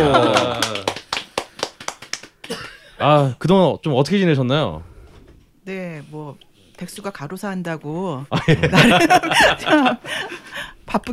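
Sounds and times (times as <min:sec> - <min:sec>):
laughter: 0:00.0 - 0:01.0, 0:08.3 - 0:10.6
hand clapping: 0:00.1 - 0:02.7
speech: 0:03.0 - 0:04.9, 0:05.6 - 0:11.1.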